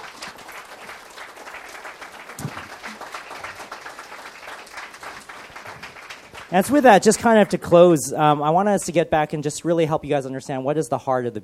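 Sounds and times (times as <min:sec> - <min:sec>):
crowd applause: 0:00.0 - 0:07.7
speech: 0:06.5 - 0:11.4.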